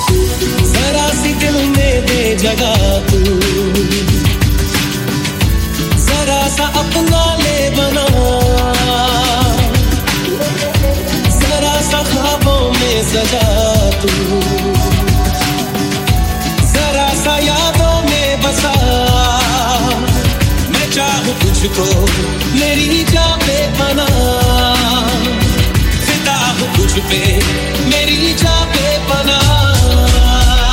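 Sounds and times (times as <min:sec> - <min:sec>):
chillout remix ringtone: 0:00.0 - 0:30.7.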